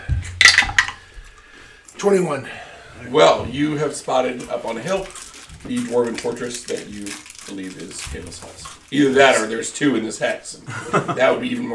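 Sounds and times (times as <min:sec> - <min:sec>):
dice being rolled: 0:00.4 - 0:01.0
speech: 0:02.0 - 0:11.7
laughter: 0:10.6 - 0:11.6.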